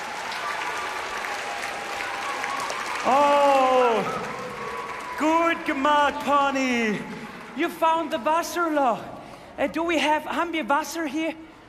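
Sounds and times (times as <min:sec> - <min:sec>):
group applause: 0:00.0 - 0:09.1
speech: 0:03.0 - 0:03.3, 0:05.2 - 0:11.5.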